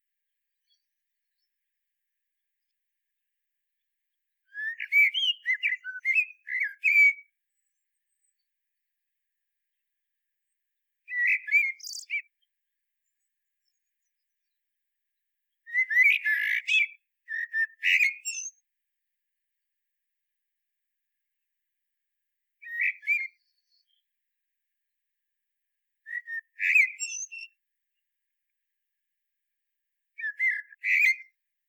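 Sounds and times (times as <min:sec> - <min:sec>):
common blackbird singing: 0:04.5 - 0:08.4, 0:11.1 - 0:12.4, 0:15.7 - 0:18.6, 0:22.6 - 0:24.0, 0:26.1 - 0:27.6, 0:30.2 - 0:31.3.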